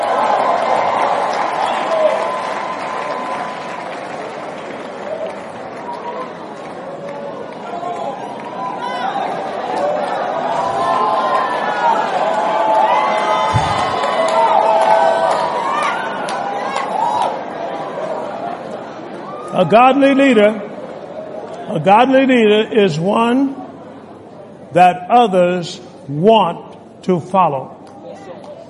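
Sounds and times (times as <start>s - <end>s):
audience clapping and cheering: 0.0s - 18.2s
speech: 19.6s - 20.6s, 21.7s - 23.6s, 24.7s - 27.8s.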